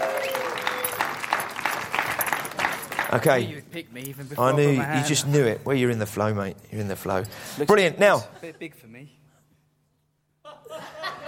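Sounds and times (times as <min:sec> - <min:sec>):
audience applause at a live show: 0:00.0 - 0:03.4
speech: 0:03.1 - 0:09.2
laughter: 0:10.4 - 0:11.2.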